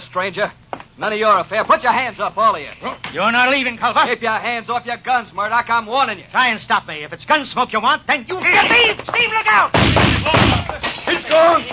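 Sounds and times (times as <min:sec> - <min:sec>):
speech: 0:00.1 - 0:11.7
kerosene lamp being smashed: 0:09.8 - 0:11.6.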